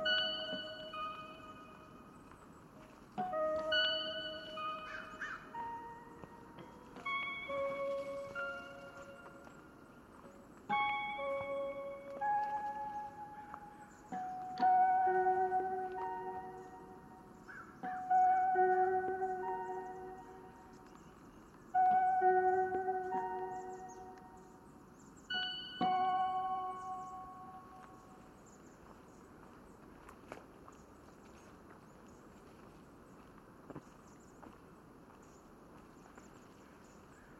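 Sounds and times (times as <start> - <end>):
soft steady hiss: 0.0 - 37.3
bird whistling at Nestucca Bay National Wildlife Refuge: 4.6 - 5.6.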